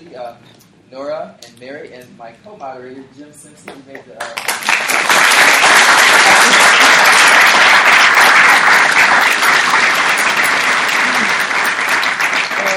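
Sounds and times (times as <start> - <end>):
speech: 0.1 - 6.5
audience applause: 4.3 - 12.7.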